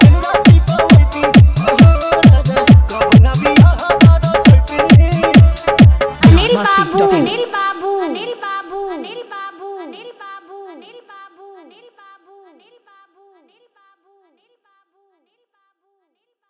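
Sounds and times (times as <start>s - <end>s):
Bhojpuri song remix with hard dholki: 0.0s - 10.8s.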